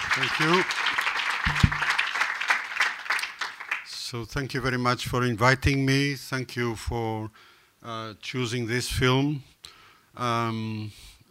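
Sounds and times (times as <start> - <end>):
audience applause at a film screening: 0.0 - 3.8
speech: 0.2 - 1.0, 4.1 - 11.1
dull low thumps: 1.5 - 1.9.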